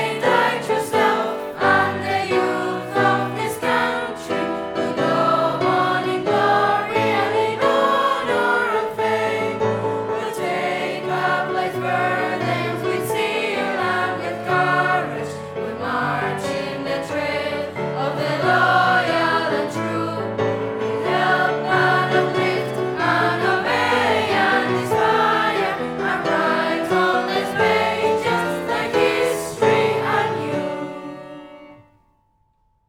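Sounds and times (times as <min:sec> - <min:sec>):
secondary school choir singing a hymn: 0:00.0 - 0:31.9
piano: 0:00.0 - 0:32.8.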